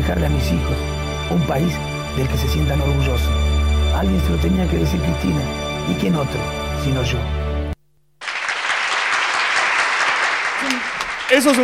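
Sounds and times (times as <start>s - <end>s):
speech: 0.1s - 7.5s, 11.3s - 11.6s
audience applause: 8.2s - 11.6s.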